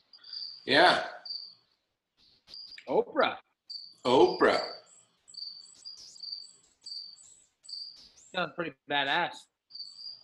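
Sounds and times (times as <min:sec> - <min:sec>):
crickets chirping: 0:00.0 - 0:01.6, 0:03.7 - 0:08.4, 0:09.7 - 0:10.2
speech: 0:00.7 - 0:01.2, 0:02.9 - 0:03.4, 0:04.0 - 0:04.7, 0:08.4 - 0:09.5.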